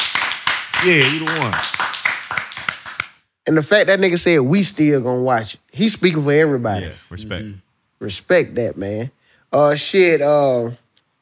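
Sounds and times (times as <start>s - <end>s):
hands clapping: 0.0s - 3.2s
speech: 0.8s - 1.8s, 3.4s - 10.8s
man calling out excitedly: 6.7s - 7.6s.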